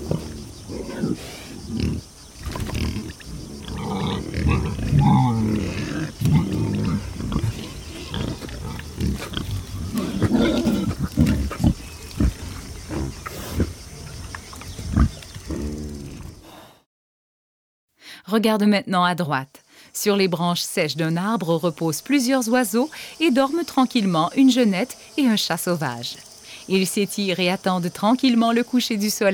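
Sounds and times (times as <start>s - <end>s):
wild boars' harsh roar-like growls: 0.0s - 14.2s, 14.9s - 16.8s
group of wild boars grunting and snorting: 0.0s - 16.9s
speech: 18.4s - 29.3s.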